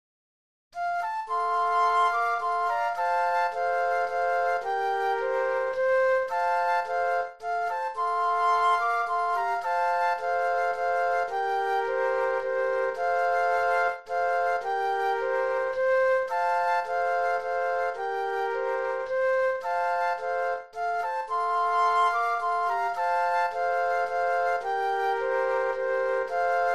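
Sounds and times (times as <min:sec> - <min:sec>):
flute trio playing: 0:00.8 - 0:26.7.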